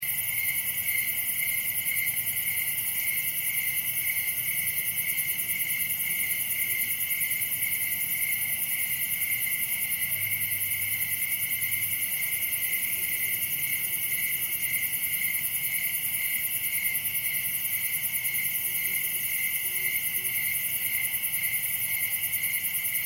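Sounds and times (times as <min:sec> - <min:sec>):
crickets chirping: 0:00.0 - 0:23.0.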